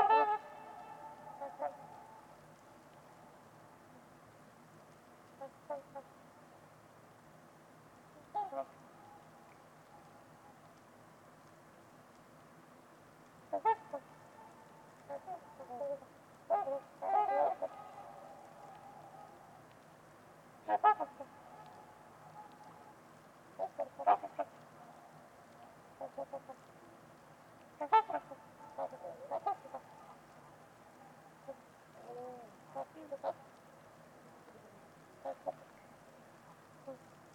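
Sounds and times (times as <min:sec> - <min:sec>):
Trumpeter swans honking: 0:00.0 - 0:02.4, 0:08.2 - 0:09.2, 0:13.5 - 0:19.6, 0:20.6 - 0:22.9, 0:23.6 - 0:24.6, 0:26.0 - 0:26.6, 0:27.8 - 0:30.2
background hiss: 0:00.0 - 0:37.3
speech: 0:08.6 - 0:08.8.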